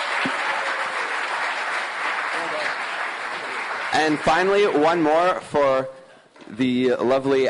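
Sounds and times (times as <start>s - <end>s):
audience round of applause: 0.0s - 5.1s
speech: 4.0s - 7.4s.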